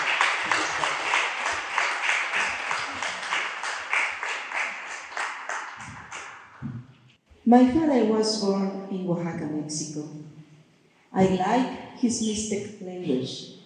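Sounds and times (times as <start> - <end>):
audience applause welcoming a speaker: 0.0 - 6.6
speech: 7.5 - 10.3, 11.2 - 13.6.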